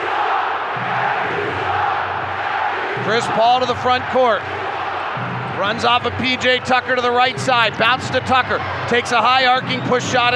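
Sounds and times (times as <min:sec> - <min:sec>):
arena crowd chanting: 0:00.0 - 0:05.6
speech: 0:03.1 - 0:04.6, 0:05.6 - 0:10.3.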